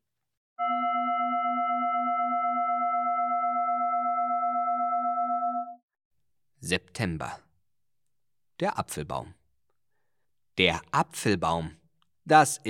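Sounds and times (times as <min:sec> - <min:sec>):
singing bowl ringing: 0:00.6 - 0:05.8
speech: 0:06.7 - 0:07.4, 0:08.6 - 0:09.4, 0:10.6 - 0:12.6.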